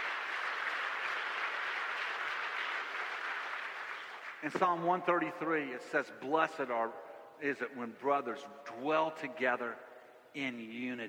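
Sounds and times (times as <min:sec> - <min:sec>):
audience clapping hands: 0:00.0 - 0:04.8
speech: 0:04.4 - 0:11.0.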